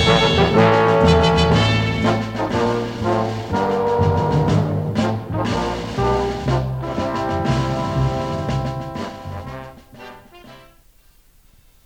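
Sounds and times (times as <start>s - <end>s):
background music bed: 0.0s - 11.4s.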